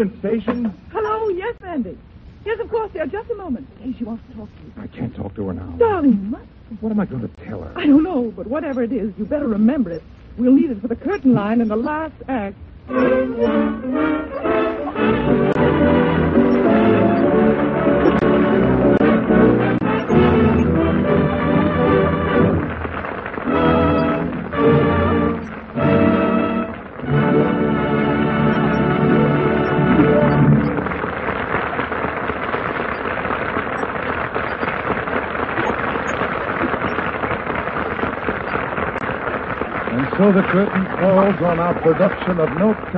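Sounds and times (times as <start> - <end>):
speech: 0.0 - 15.4, 40.4 - 42.9
enthusiastic theater audience applause in the Gulf Theater: 12.9 - 42.9.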